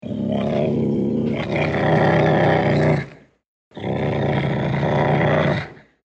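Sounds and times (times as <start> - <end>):
leopard and ocelot growling viciously: 0.0 - 6.0.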